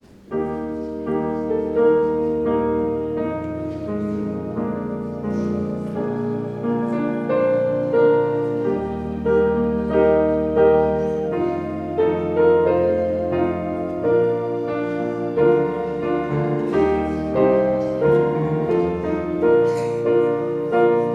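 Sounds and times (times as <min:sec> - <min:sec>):
prelude music: 0:00.0 - 0:21.1.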